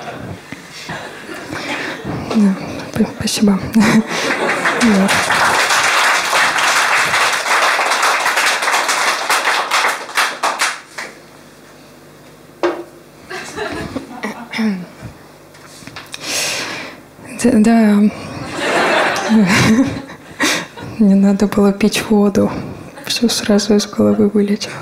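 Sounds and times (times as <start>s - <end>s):
laughter: 0.0s - 2.4s, 3.6s - 8.1s, 13.3s - 14.5s, 18.1s - 21.0s
speech: 2.4s - 5.6s, 21.3s - 24.8s
live audience applause: 3.9s - 11.2s.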